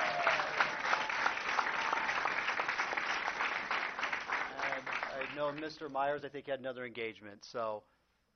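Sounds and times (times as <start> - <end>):
audience applause: 0.0 - 5.7
speech: 5.4 - 8.0.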